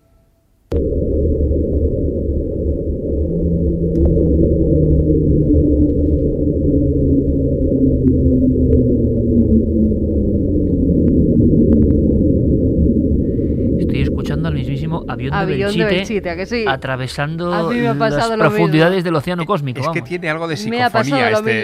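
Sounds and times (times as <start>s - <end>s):
Antarctic underwater 'Slow Down' hydrophone low rumble: 0.7s - 17.5s
speech: 15.4s - 21.6s.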